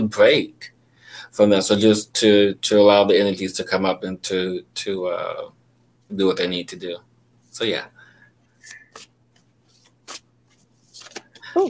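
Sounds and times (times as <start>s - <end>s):
speech: 0.0s - 8.0s
new deck of cards being drawn and shuffled: 8.6s - 11.6s.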